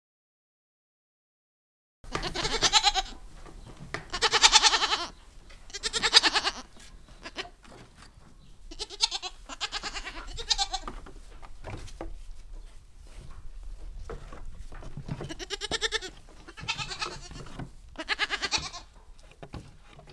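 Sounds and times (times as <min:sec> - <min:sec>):
goat kids giving tremulous bleats: 0:02.1 - 0:11.1, 0:15.1 - 0:19.1.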